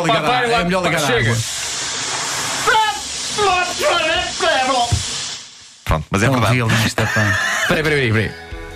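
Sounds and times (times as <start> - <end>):
speech: 0.0 - 1.6, 3.4 - 5.0, 5.9 - 8.4
jet of water spraying: 1.0 - 5.9
laughter: 6.7 - 8.0.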